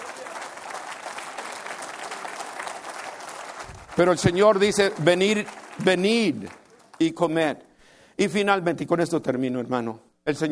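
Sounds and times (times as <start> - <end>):
audience applause: 0.0 - 7.1
speech: 4.0 - 10.5.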